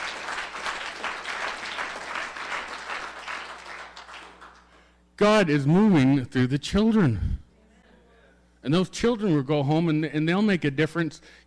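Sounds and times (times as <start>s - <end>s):
crowd applauding: 0.0s - 4.8s
speech: 5.2s - 7.4s, 8.6s - 11.4s.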